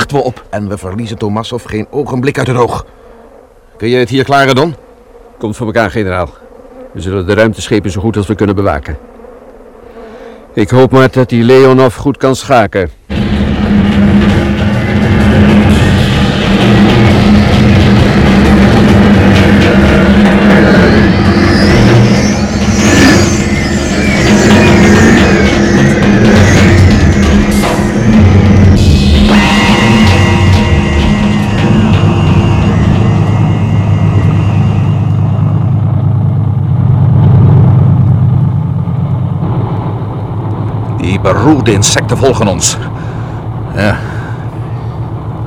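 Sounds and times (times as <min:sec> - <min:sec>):
speech: 0:00.1 - 0:03.0, 0:03.8 - 0:04.8, 0:05.4 - 0:09.1, 0:10.6 - 0:14.2, 0:41.2 - 0:43.1, 0:43.8 - 0:44.2
vehicle engine driving along a jungle track: 0:13.1 - 0:45.4.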